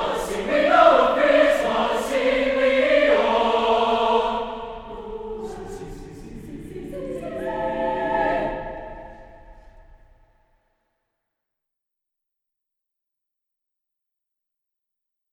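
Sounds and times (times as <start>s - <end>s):
SATB choir singing: 0.0s - 10.3s.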